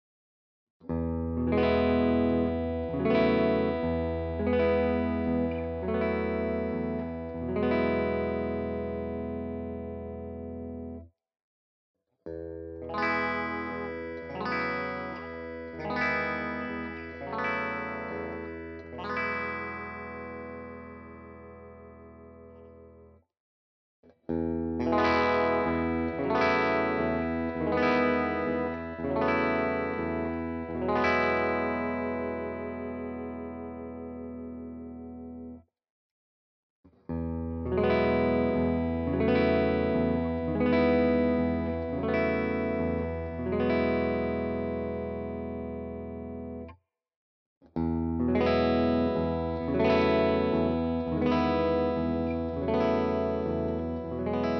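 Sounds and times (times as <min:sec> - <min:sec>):
Guild guitar clean chords in all positions: 0:00.9 - 0:11.1, 0:12.3 - 0:23.2, 0:24.3 - 0:35.6, 0:37.1 - 0:46.8, 0:47.7 - 0:54.5.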